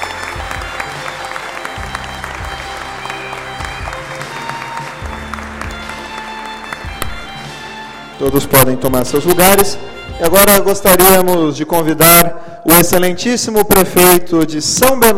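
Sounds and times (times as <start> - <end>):
audience applause: 0.0 - 8.1
speech: 8.2 - 15.1.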